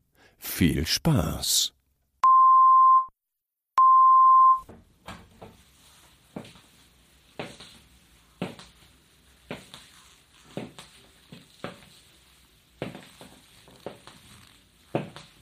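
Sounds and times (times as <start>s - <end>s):
speech: 0.6s - 1.8s
short headphone test beeps: 2.2s - 3.1s, 3.8s - 4.6s
faint crackling and rustling: 4.8s - 15.4s.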